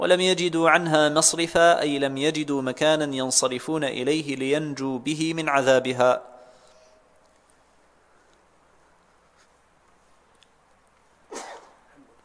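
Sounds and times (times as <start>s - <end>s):
speech: 0.0s - 6.3s
faint hiss: 0.0s - 12.2s
person sneezing: 11.3s - 12.2s.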